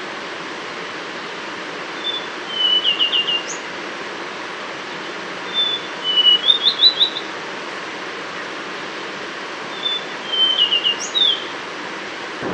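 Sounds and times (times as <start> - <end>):
brown scrub robin singing: 1.9 - 3.7, 5.4 - 7.4, 9.7 - 11.6.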